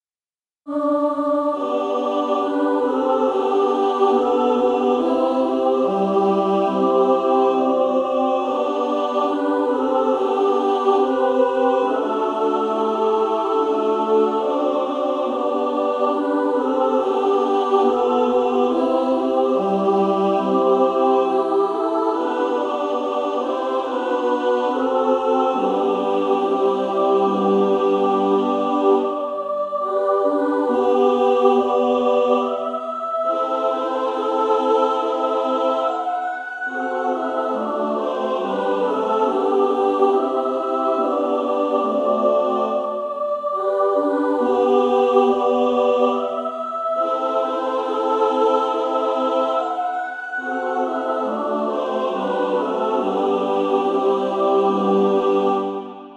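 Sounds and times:
female choir singing: 0:00.7 - 0:56.1.

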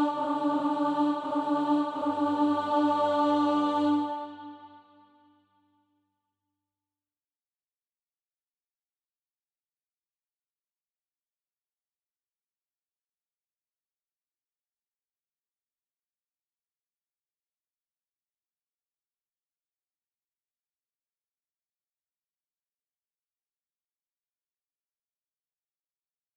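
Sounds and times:
alto voice singing practice music: 0:00.0 - 0:05.3.

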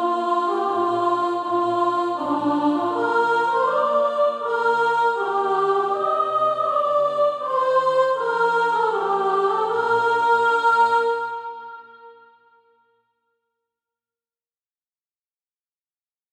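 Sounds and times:
soprano singing practice music: 0:00.0 - 0:12.2.

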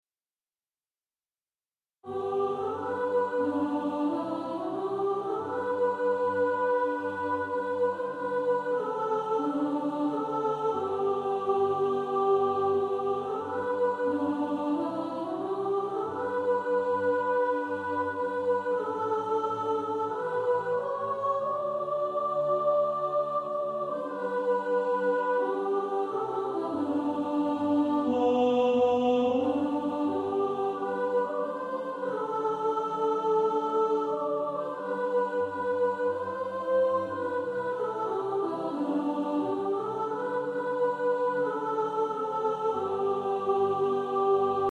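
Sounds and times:
soprano singing practice music: 0:02.1 - 0:44.7.

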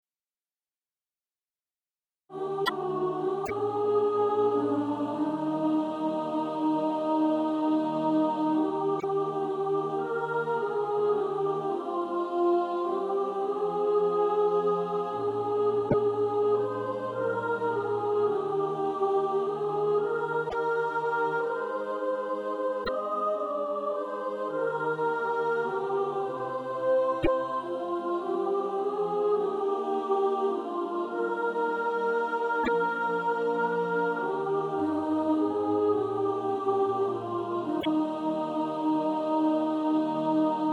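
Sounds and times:
soprano singing SATB practice music: 0:02.3 - 0:40.7.

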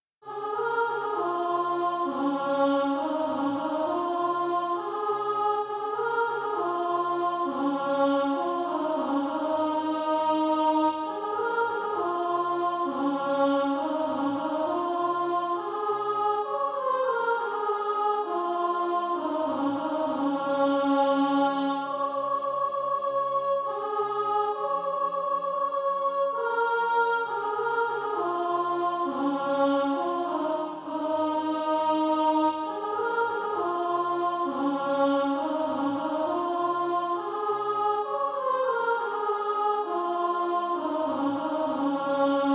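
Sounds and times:
soprano singing SATB practice music: 0:00.3 - 0:42.5.

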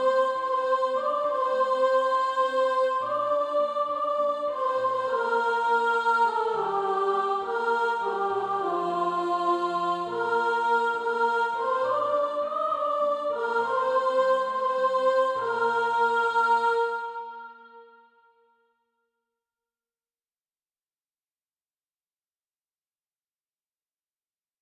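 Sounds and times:
alto voice singing: 0:00.0 - 0:18.1.

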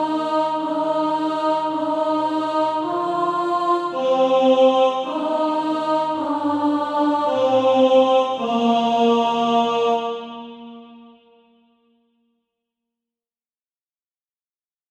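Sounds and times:
alto part of SATB practice music: 0:00.0 - 0:11.3.

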